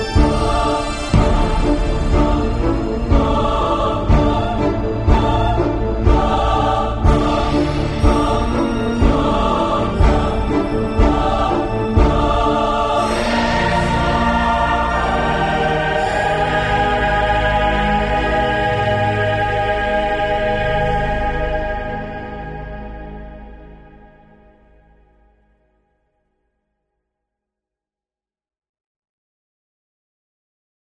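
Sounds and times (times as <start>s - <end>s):
choir singing staccato: 0.0s - 24.1s.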